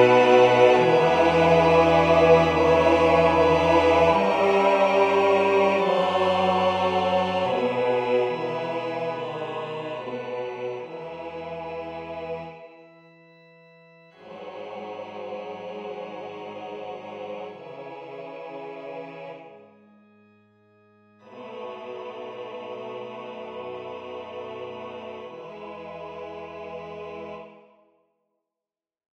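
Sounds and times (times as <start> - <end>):
bass voice singing a hymn: 0.0 - 12.4.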